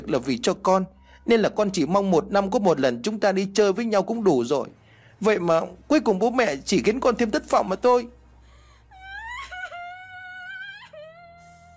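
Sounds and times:
speech: 0:00.1 - 0:08.2
girl bursting into tears, crying: 0:08.9 - 0:11.7.

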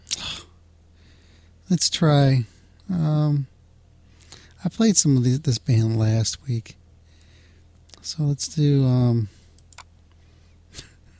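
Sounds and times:
speech: 0:01.7 - 0:03.5, 0:04.6 - 0:06.8, 0:08.0 - 0:09.4
clicking around on a computer: 0:09.6 - 0:09.9.

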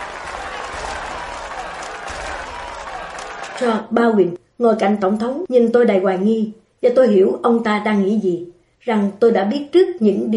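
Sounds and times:
crowd applause in a hall during a presidential address: 0:00.0 - 0:03.7
speech: 0:03.6 - 0:10.3.

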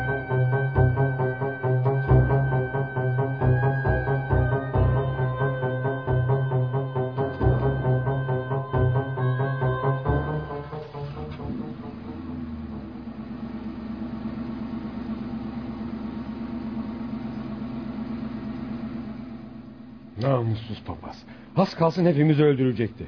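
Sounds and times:
tonal sounds: 0:00.0 - 0:14.8
truck engine running: 0:00.0 - 0:22.1
speech: 0:20.3 - 0:23.0.

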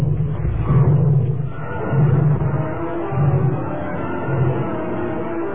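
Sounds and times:
tiger roaring and growling as it lunges to attack: 0:00.0 - 0:05.4.

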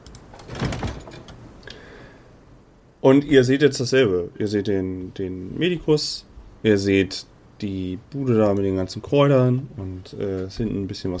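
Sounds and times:
door being bolted shut: 0:00.3 - 0:01.4
speech: 0:03.0 - 0:11.1.

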